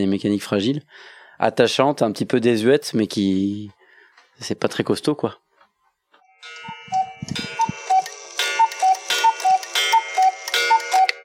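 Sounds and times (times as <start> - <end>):
speech: 0.0 - 3.8, 4.4 - 5.4
cuckoo clock ticking: 6.4 - 11.2.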